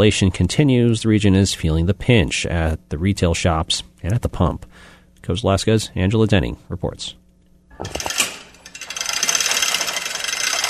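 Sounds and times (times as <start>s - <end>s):
speech: 0.0s - 7.2s, 7.8s - 8.1s
chain hoist being pulled in warehouse: 7.8s - 10.6s.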